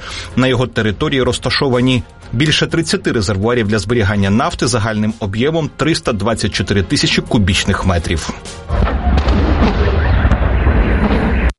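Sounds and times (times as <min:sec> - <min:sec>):
speech: 0:00.4 - 0:09.1
explosions at an oil terminal in Petersburg: 0:08.7 - 0:11.5.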